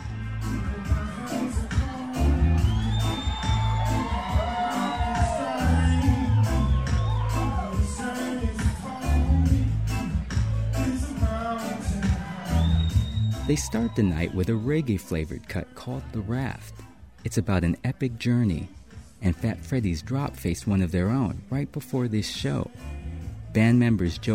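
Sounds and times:
concert crowd cheering at the Roxy on the LA Sunset Strip: 0.0 - 9.5, 10.2 - 15.1
speech: 13.5 - 23.0, 23.6 - 24.3.

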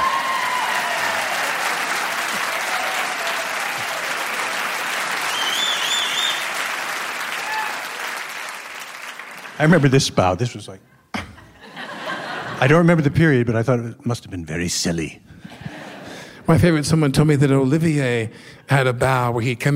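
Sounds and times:
audience applause: 0.0 - 10.0
speech: 9.6 - 11.0, 12.6 - 15.6, 16.5 - 19.7
laughter: 11.2 - 12.8, 15.4 - 16.4.

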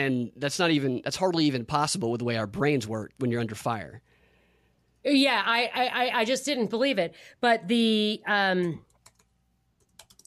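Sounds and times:
speech: 0.0 - 4.1, 5.0 - 8.9
computer keyboard typing while looking something up online: 8.6 - 10.2.

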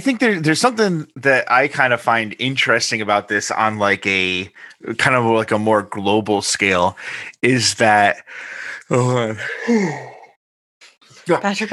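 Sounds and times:
speech: 0.0 - 10.2, 11.3 - 11.7
person imitating a yawn: 8.9 - 10.4.

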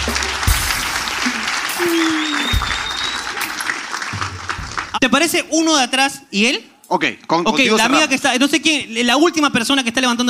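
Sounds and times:
audience applause: 0.0 - 5.0
speech: 5.0 - 10.2.

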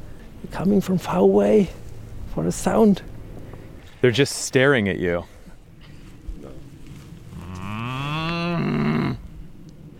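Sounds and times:
speech: 0.5 - 1.8, 2.4 - 3.1, 4.0 - 5.3
cow mooing: 7.3 - 9.3.

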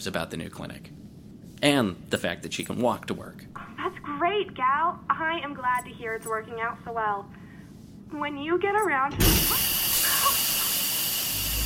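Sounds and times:
speech: 0.0 - 1.0, 1.6 - 7.4, 8.1 - 9.7
plumbing hissing as air pockets pumped out: 9.2 - 11.6.

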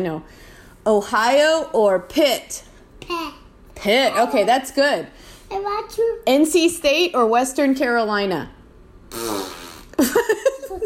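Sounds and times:
speech: 0.0 - 10.8
fart noise: 9.1 - 10.2.

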